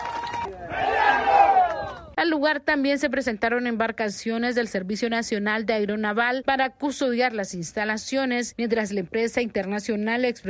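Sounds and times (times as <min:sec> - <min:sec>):
citizens shouting slogans against the mining company: 0:00.5 - 0:02.1
speech: 0:02.5 - 0:10.4.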